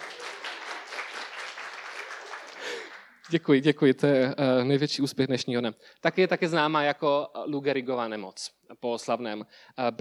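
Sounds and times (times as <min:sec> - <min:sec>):
audience applause: 0:00.0 - 0:03.4
speech: 0:03.3 - 0:10.0.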